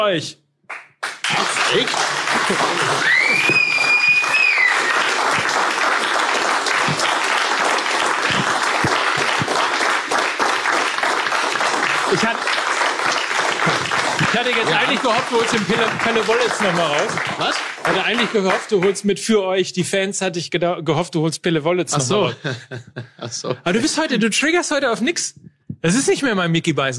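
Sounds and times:
speech: 0.0s - 0.4s, 1.3s - 4.4s, 12.1s - 26.9s
audience applause: 1.0s - 19.0s
laughter: 1.3s - 3.5s, 13.5s - 17.4s, 22.0s - 24.1s
high whistle: 3.0s - 5.1s.

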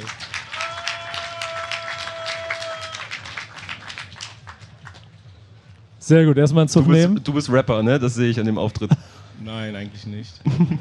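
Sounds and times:
audience applause: 0.0s - 5.1s
speech: 6.1s - 10.7s
laughter: 10.4s - 10.7s.

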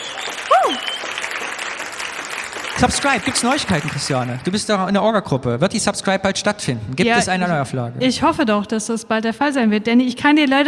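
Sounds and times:
audience applause for a guest: 0.0s - 4.8s
speech: 2.8s - 10.6s.

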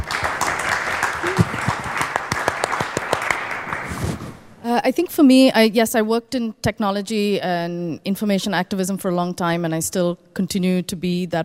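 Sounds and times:
audience clapping: 0.0s - 4.1s
speech: 4.7s - 11.4s.

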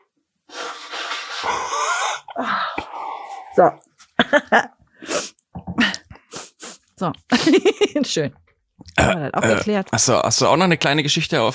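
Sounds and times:
person sneezing: 0.5s - 2.5s, 6.3s - 6.9s
speech: 3.6s - 4.7s, 7.9s - 8.5s, 9.1s - 11.5s.

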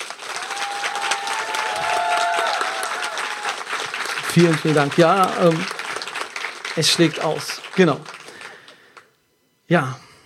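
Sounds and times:
large live audience clapping: 0.0s - 9.1s
faint whistles and cheers: 0.3s - 3.7s
speech: 4.4s - 5.8s, 6.8s - 8.1s, 9.7s - 10.0s.

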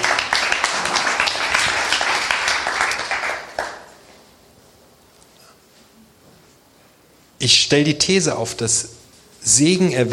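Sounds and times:
audience applause: 0.0s - 3.9s
speech: 7.4s - 10.1s.

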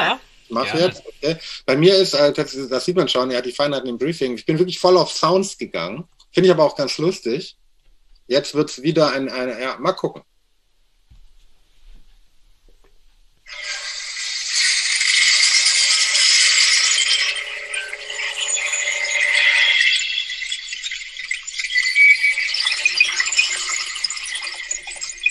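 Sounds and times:
speech: 0.0s - 7.6s, 8.3s - 10.3s
shattering glass-like splintering effect: 14.1s - 25.0s.

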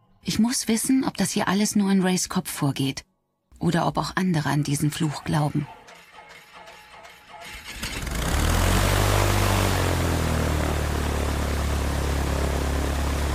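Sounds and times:
speech: 0.2s - 5.8s
small propeller plane in flight from Tobago to Trinidad: 7.7s - 13.3s.

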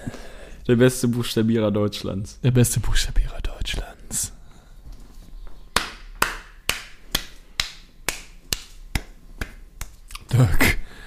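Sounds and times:
speech: 0.7s - 4.4s, 10.4s - 10.6s
hand claps: 5.8s - 10.1s.

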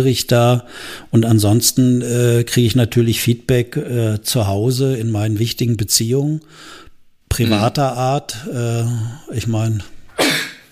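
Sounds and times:
speech: 0.0s - 9.9s
person sneezing: 7.4s - 7.7s, 10.1s - 10.7s.

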